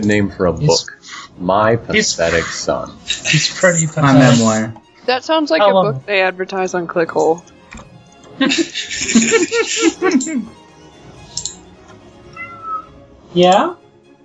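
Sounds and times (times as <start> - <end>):
speech: 0.0 - 7.5, 8.4 - 10.6, 13.3 - 13.8
laughter: 0.4 - 4.7, 8.3 - 10.5
cat meowing: 12.3 - 13.0.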